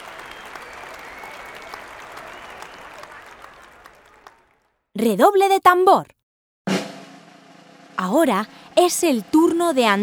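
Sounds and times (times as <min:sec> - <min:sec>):
audience applause: 0:00.0 - 0:04.8
speech: 0:05.0 - 0:06.2, 0:08.0 - 0:10.0.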